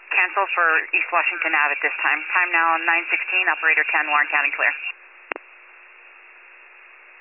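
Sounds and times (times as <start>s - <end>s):
radio static: 0.1s - 5.0s
speech: 0.2s - 5.0s.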